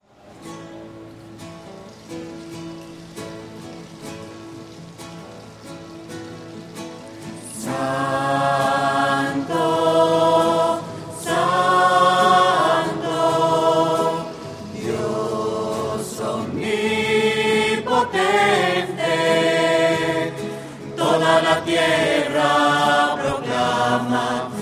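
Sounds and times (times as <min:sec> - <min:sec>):
voices singing: 0:07.2 - 0:24.6.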